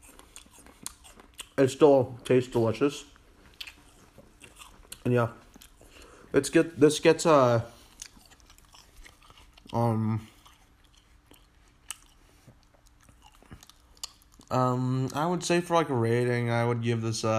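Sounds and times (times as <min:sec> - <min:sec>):
biting into and chewing a hard apple: 0:00.0 - 0:06.2, 0:07.8 - 0:15.2
speech: 0:01.6 - 0:03.1, 0:05.0 - 0:05.4, 0:06.3 - 0:07.8, 0:09.8 - 0:10.3, 0:14.5 - 0:17.3.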